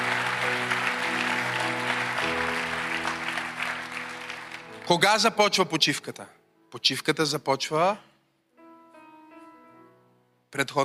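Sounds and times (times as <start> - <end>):
audience clapping: 0.0 - 5.6
speech: 4.9 - 8.1, 10.5 - 10.8.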